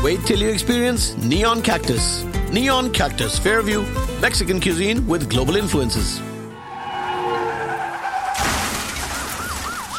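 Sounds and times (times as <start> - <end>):
speech: 0.0 - 6.3
car tires skidding: 6.5 - 9.9.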